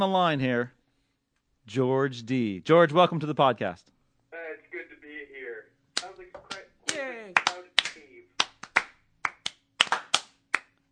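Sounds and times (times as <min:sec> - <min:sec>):
speech: 0:00.0 - 0:00.8, 0:01.6 - 0:03.9
golf clap: 0:07.4 - 0:10.8.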